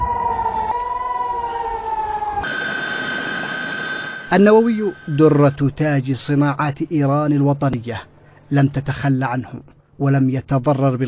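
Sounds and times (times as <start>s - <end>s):
air raid warning sirens: 0.0s - 6.4s
speech: 4.3s - 11.0s.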